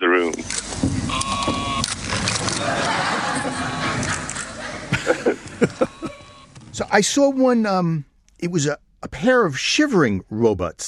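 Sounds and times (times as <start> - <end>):
wooden toy box making sheep bleat sound: 1.1 - 1.8, 5.8 - 6.5
laughter: 2.1 - 6.5
speech: 6.9 - 10.8.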